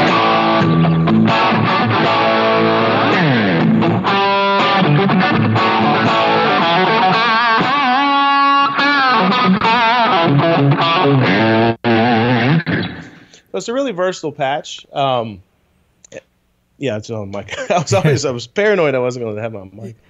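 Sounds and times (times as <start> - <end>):
electric guitar with Timmy overdrive crunch: 0.0 - 13.4
speech: 13.6 - 15.5, 16.1 - 20.0
laughter: 17.5 - 18.2.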